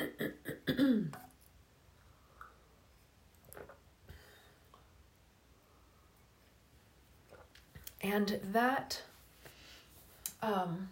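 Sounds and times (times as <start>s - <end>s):
person clearing throat: 0.0s - 1.3s
speech: 0.8s - 1.2s, 8.0s - 9.1s, 10.4s - 10.9s
person sipping tea: 3.4s - 3.9s, 7.2s - 8.0s.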